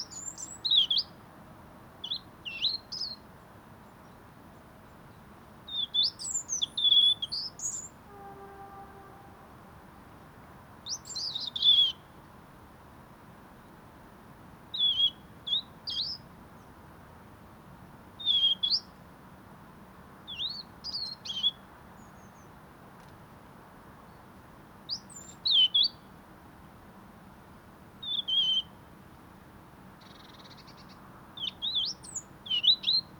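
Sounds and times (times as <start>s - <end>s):
European robin singing: 0.0s - 1.1s, 5.7s - 9.5s, 10.9s - 12.1s, 14.7s - 16.2s, 18.2s - 18.9s, 20.3s - 22.5s, 24.9s - 26.0s, 28.0s - 28.7s, 30.0s - 33.1s
faint background hiss: 0.0s - 33.1s.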